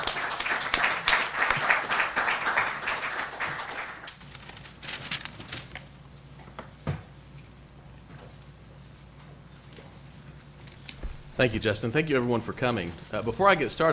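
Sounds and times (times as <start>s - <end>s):
audience applause: 0.0s - 4.2s
speech: 11.4s - 13.9s.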